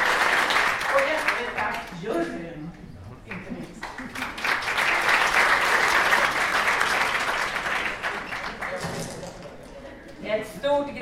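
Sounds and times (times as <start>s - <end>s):
audience applause: 0.0s - 1.9s, 3.3s - 9.8s.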